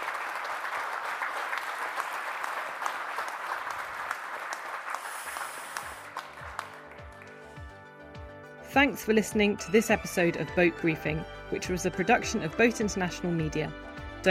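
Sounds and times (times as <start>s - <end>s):
audience applause: 0.0s - 7.7s
speech: 8.7s - 14.2s.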